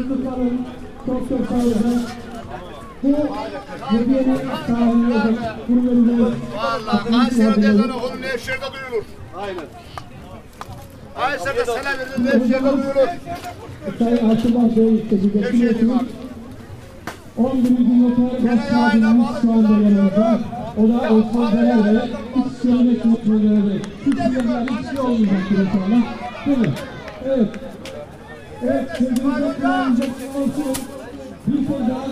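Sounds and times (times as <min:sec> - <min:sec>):
Turkish funfair in Düsseldorf Oberbilk: 0:00.0 - 0:32.0.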